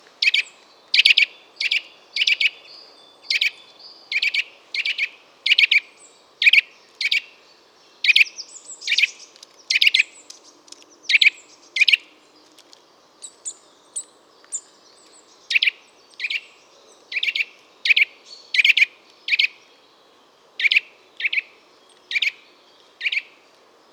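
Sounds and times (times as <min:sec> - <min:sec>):
Eurasian nuthatch calling: 0:00.2 - 0:02.6, 0:03.2 - 0:07.3, 0:08.0 - 0:12.1, 0:13.2 - 0:19.6, 0:20.6 - 0:23.4.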